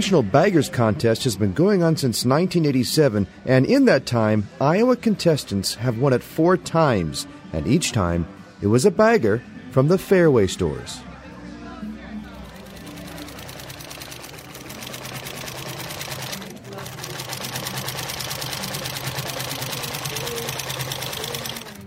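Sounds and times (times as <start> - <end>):
speech: 0.0 - 11.1
sewing machines humming at the Iowa State Fair sew-in: 12.4 - 21.8.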